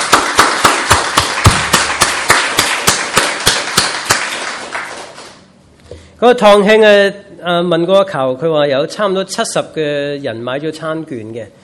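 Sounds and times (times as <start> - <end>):
crowd clapping in welcome: 0.0 - 5.5
speech: 6.2 - 11.6.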